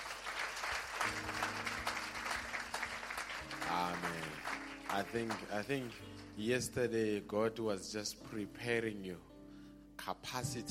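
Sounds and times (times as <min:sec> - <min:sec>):
audience applause: 0:00.0 - 0:06.2
speech: 0:03.7 - 0:09.3, 0:10.0 - 0:10.6.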